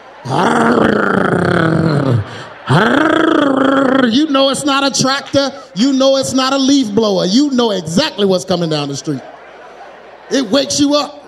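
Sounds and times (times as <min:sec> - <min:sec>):
laughter: 0:00.0 - 0:11.2
voice imitating tow truck engine: 0:00.2 - 0:04.3
speech: 0:00.3 - 0:00.6, 0:04.1 - 0:09.3, 0:10.3 - 0:11.2.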